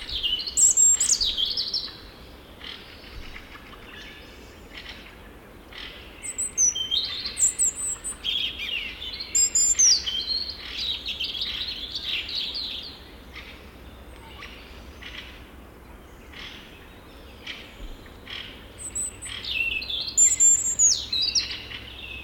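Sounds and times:
European robin song: 0.0 - 22.2
background hiss: 0.0 - 22.2.

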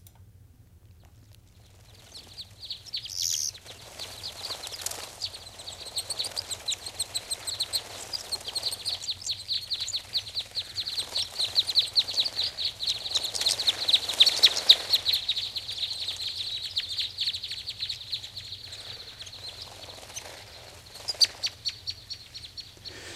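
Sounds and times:
flock of parrot crossbills calling: 2.4 - 23.1.

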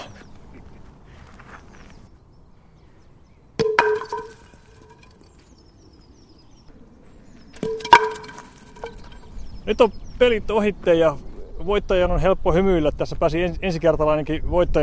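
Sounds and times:
thrown wooden batons knocking over wooden pins: 3.6 - 5.4, 7.6 - 9.4
speech: 9.7 - 14.8.

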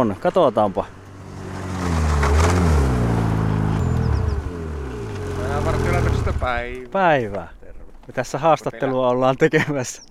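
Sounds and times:
speech: 0.0 - 1.0, 6.3 - 10.0
snowmobiles driving past: 1.0 - 7.0.

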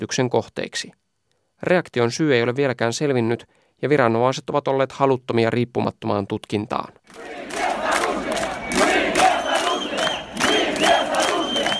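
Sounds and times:
speech: 0.0 - 1.0, 1.6 - 7.6
large protest crowd chanting: 7.1 - 11.7.

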